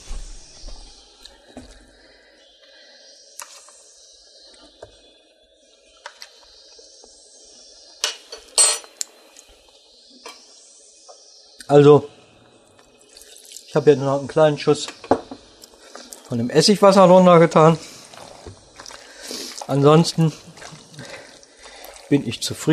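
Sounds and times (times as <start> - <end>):
metal spoon clinking against dishes: 8.0 - 9.0
speech: 11.7 - 12.1, 13.8 - 15.0, 16.3 - 17.9, 19.7 - 20.5, 22.1 - 22.7.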